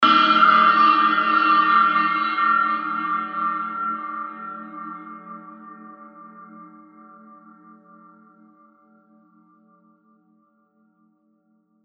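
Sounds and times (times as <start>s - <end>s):
Tibetan chai cymbal: 0.0s - 4.7s.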